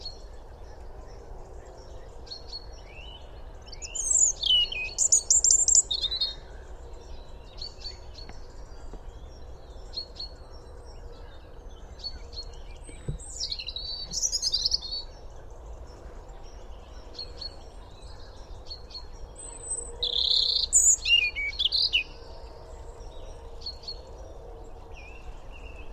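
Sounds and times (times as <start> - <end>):
European robin song: 0.0 - 24.3.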